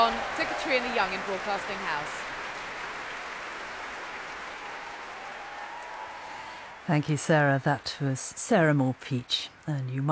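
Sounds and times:
speech: 0.0 - 2.3, 6.9 - 10.1
concert hall audience applause: 0.0 - 8.0.

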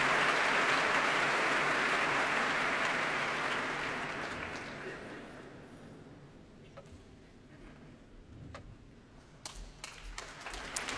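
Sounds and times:
concert audience applause as leader enters: 0.0 - 5.0, 10.2 - 10.9.

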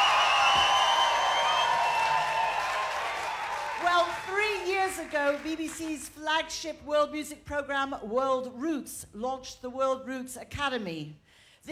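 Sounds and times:
festival crowd at an outdoor stage cheering and applauding: 0.0 - 5.9
speech: 5.0 - 11.7.

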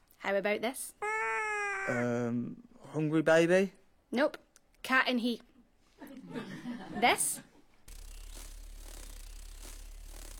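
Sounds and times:
speech: 0.2 - 1.1, 1.8 - 7.5
hummingbird wings buzzing: 7.9 - 10.3.

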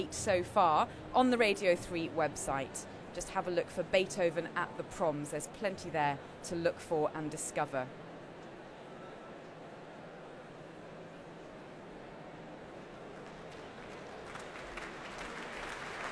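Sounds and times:
speech: 0.0 - 8.0
concert hall applause for conductor: 13.1 - 16.1.

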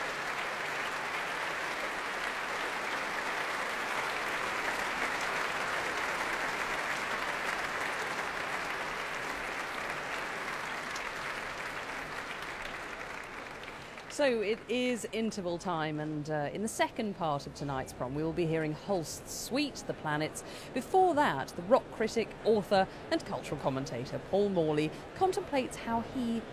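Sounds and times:
concert hall audience applause: 0.0 - 14.1
speech: 14.2 - 26.5.

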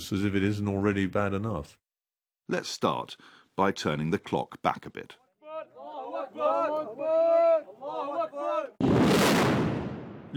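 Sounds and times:
speech: 0.0 - 1.8, 2.5 - 5.2, 6.3 - 9.5
men shouting and chanting: 5.4 - 8.8
rebel rocket launcher firing: 8.8 - 10.3.

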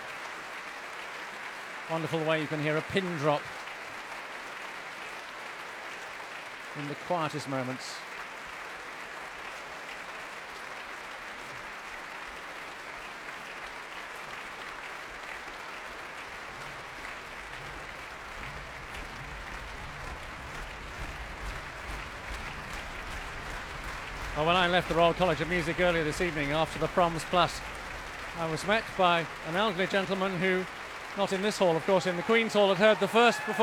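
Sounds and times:
concert hall audience applause in the Royal Albert Hall: 0.0 - 33.6
speech: 1.9 - 3.6, 6.8 - 8.1, 24.4 - 27.7, 28.4 - 33.6.

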